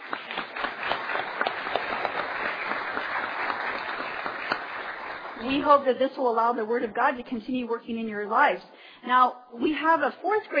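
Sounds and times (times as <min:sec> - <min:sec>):
audience applause: 0:00.0 - 0:05.6
speech: 0:05.4 - 0:10.5.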